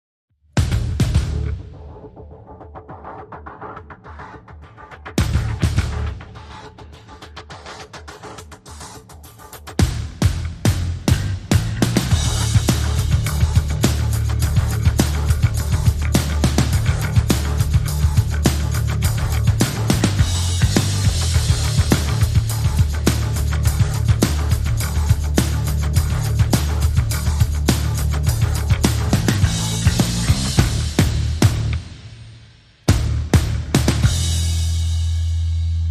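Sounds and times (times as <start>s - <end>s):
drums: 0.4s - 35.8s
bass: 0.5s - 3.8s, 5.1s - 6.7s, 9.7s - 35.8s.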